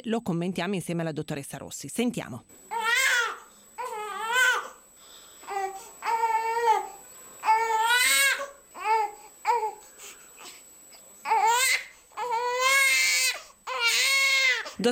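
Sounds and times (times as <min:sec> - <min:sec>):
speech: 0:00.0 - 0:02.7
young infant crying: 0:02.7 - 0:04.8, 0:05.4 - 0:09.8, 0:11.2 - 0:14.8.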